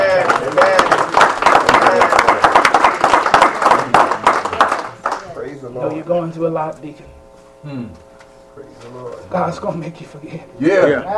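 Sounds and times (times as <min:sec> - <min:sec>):
audience clapping hands: 0:00.0 - 0:05.4
speech: 0:06.1 - 0:11.1.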